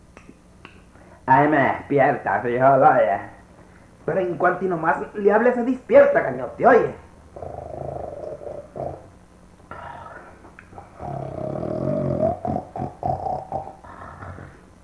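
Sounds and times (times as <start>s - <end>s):
speech: 1.3s - 3.4s, 4.1s - 7.6s
person snoring loudly: 7.4s - 9.1s, 9.7s - 14.7s.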